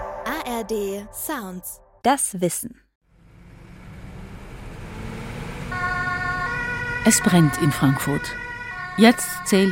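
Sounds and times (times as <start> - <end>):
speech: 0.5 - 2.8, 7.1 - 9.7
fire engine siren: 3.2 - 9.7.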